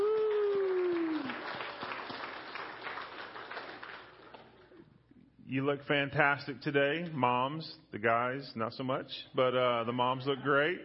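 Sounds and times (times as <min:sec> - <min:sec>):
audience applause: 0:00.0 - 0:04.6
speech: 0:05.5 - 0:10.8.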